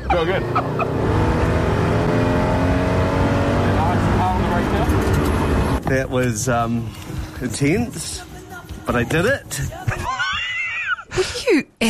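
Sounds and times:
race car engine revving during spin out: 0.0 - 5.8
speech: 0.1 - 1.3, 5.9 - 9.9, 11.2 - 11.8.

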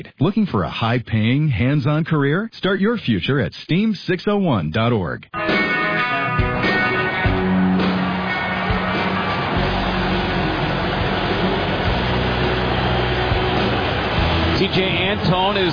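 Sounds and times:
speech: 0.0 - 5.6, 14.7 - 15.7
stadium crowd roaring: 6.5 - 15.7.

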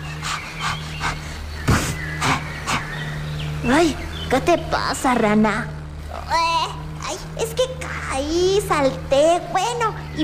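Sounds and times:
rapid panting breath: 0.0 - 3.1
constant low hum: 0.0 - 10.2
speech: 3.6 - 10.2.

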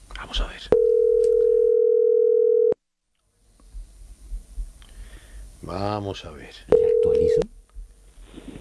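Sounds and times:
speech: 0.3 - 0.7, 5.7 - 7.5
telephone dialing clicks: 0.7 - 1.7, 6.7 - 7.5
telephone dial tone: 0.7 - 2.7, 6.7 - 7.5.

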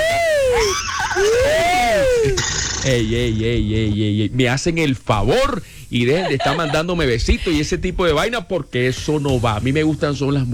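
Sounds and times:
human voice imitating a horse's whinny: 0.0 - 2.6
speech: 2.8 - 10.5
laughter: 6.0 - 7.6.

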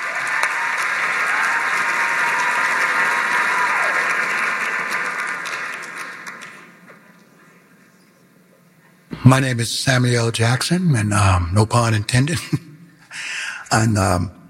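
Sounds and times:
audience applause: 0.0 - 7.0
speech: 9.2 - 12.6, 13.7 - 14.4.

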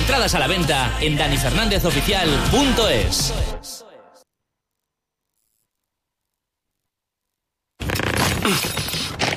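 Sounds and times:
speech: 0.2 - 3.6, 8.5 - 8.8
strained zip and rattle forcing an overfull suitcase shut: 7.8 - 9.3.

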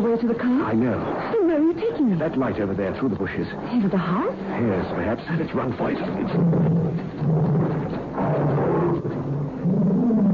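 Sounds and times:
speech: 0.0 - 7.7
tiger roaring: 6.0 - 10.3.

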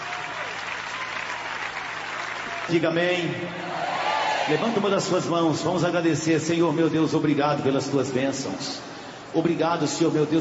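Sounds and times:
congregation clapping in church: 0.0 - 4.6
speech: 2.7 - 3.9, 4.5 - 10.4.

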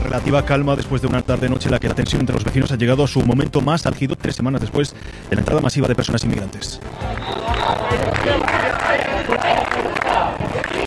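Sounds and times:
speech: 0.1 - 10.8
crowd shouting and chanting at protest: 6.8 - 10.8.

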